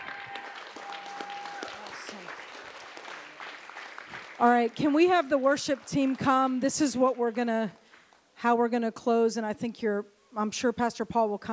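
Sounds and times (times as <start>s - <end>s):
audience clapping and praising: 0.0s - 8.3s
speech: 4.4s - 7.8s, 8.4s - 11.5s.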